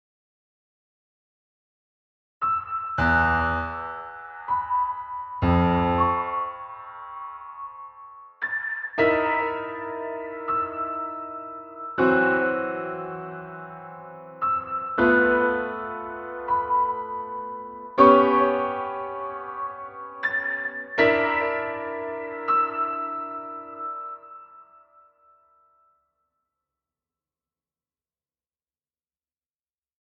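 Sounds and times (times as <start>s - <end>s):
piano: 2.4s - 26.0s.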